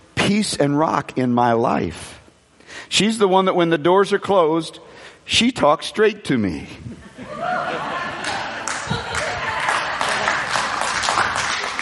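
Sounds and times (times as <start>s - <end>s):
speech: 0.3s - 7.1s
laughter: 6.8s - 11.8s
audience clapping: 8.2s - 11.8s.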